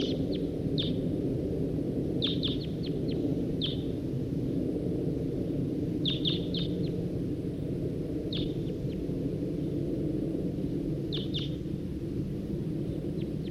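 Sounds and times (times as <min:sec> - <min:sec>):
low rumble: 0:00.0 - 0:13.4
wild male bird singing: 0:02.2 - 0:03.9, 0:06.0 - 0:07.0, 0:08.3 - 0:08.9, 0:11.1 - 0:11.6.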